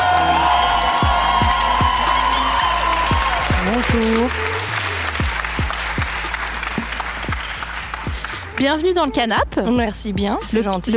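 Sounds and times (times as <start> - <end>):
crowd cheering and whooping for a musical guest on a show: 0.0 - 8.1
speech: 3.8 - 4.5, 8.6 - 10.9.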